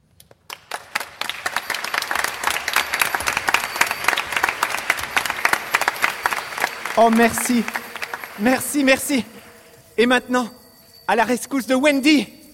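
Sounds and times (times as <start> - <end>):
audience applause: 0.5 - 9.7
speech: 7.0 - 7.8, 8.4 - 9.4, 10.0 - 12.4.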